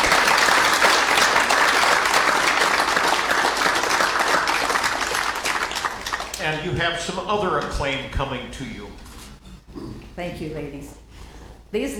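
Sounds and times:
audience clapping: 0.0 - 8.0
speech: 6.6 - 9.0, 10.2 - 11.0, 11.7 - 11.9.

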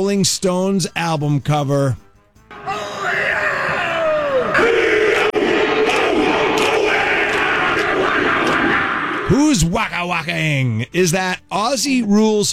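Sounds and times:
speech: 0.0 - 2.0, 9.3 - 12.5
long wavering yell: 2.5 - 9.3
Maori haka battle chant with many voices shouting: 2.5 - 9.7
stomping feet: 5.6 - 8.9.

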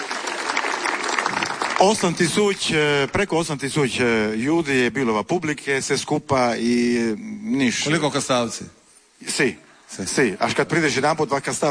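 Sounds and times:
audience applause for the 35th anniversary of the Kastav Cultural Summer festival: 0.0 - 2.9
speech: 1.8 - 11.6.

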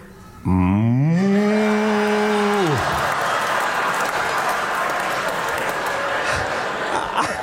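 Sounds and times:
person imitating cow moo: 0.4 - 2.8
crowd applause: 1.2 - 7.4
laughter: 1.5 - 7.4.

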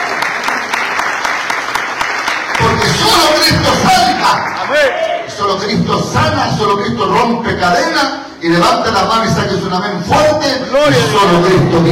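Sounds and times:
audience clapping in praise: 0.0 - 5.2
speech: 2.8 - 11.8.

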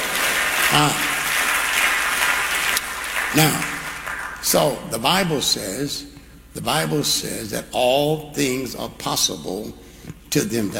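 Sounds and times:
audience clapping: 0.0 - 4.8
speech: 0.7 - 1.1, 3.3 - 3.7, 4.4 - 10.7.

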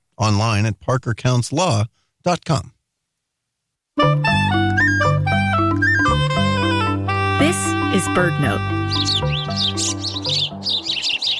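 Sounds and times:
speech: 0.2 - 2.8, 8.0 - 10.1
house sparrow chirping: 4.7 - 6.7, 7.4 - 11.3.

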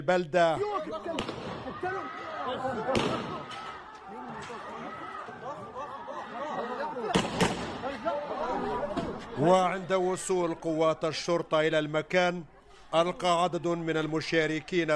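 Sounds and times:
speech: 0.0 - 5.6, 6.6 - 14.9
laughter: 0.6 - 14.9
gunfire exchange: 1.2 - 1.6, 2.9 - 3.6, 7.1 - 7.8.

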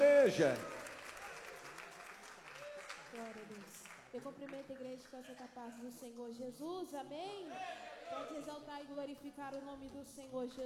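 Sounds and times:
speech: 0.0 - 0.7, 3.2 - 10.6
audience clapping hands: 0.0 - 5.7.

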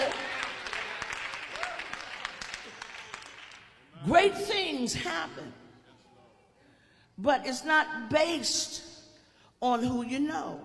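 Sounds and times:
audience clapping hands: 0.0 - 3.9
speech: 4.0 - 5.6, 7.2 - 8.9, 9.6 - 10.6.

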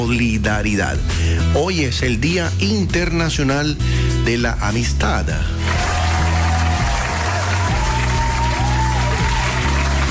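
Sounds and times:
speech: 0.0 - 5.9
applause: 5.6 - 10.0.

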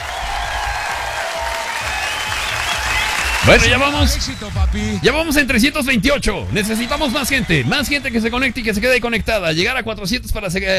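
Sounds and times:
applause sound effect: 0.0 - 5.6, 6.4 - 9.5
speech: 3.4 - 10.7.

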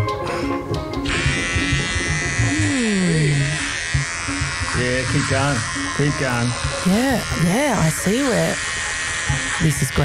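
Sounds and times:
electric hair clippers buzzing: 0.4 - 10.0
speech: 5.1 - 8.7, 9.3 - 10.0.

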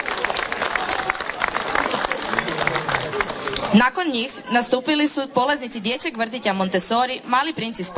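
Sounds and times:
audience applause for a folk dance group's performance: 0.0 - 3.8
speech: 3.7 - 7.9.

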